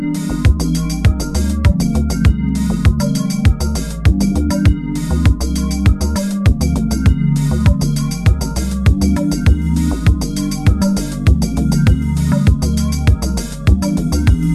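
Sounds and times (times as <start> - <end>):
musical downbeat: 0.0 - 14.5.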